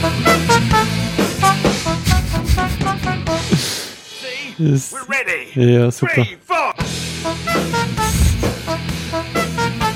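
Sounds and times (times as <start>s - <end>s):
horn honking a tune: 0.0s - 3.5s, 7.2s - 9.9s
speech: 4.6s - 6.5s.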